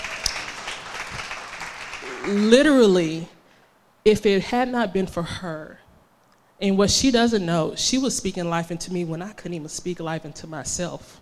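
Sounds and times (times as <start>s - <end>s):
audience applause: 0.0s - 2.5s
sharp loud clap: 0.0s - 2.7s
speech: 2.2s - 3.4s, 4.0s - 5.8s, 6.6s - 11.2s.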